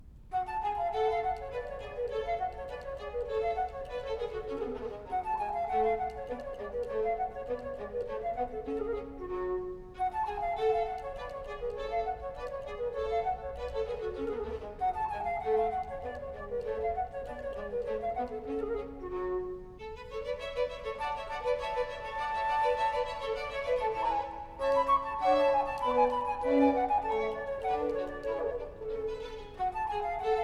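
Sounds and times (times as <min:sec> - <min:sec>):
lively gavotte: 0:00.0 - 0:30.4.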